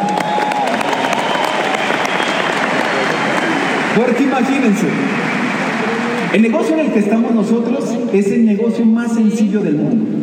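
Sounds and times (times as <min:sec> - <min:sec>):
audience applause: 0:00.0 - 0:07.3
speech: 0:04.0 - 0:05.4, 0:06.3 - 0:10.2.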